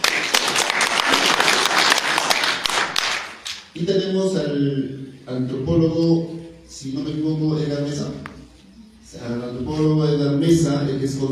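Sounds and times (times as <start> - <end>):
audience applause: 0.0 - 3.6
speech: 3.8 - 8.3, 9.1 - 11.3.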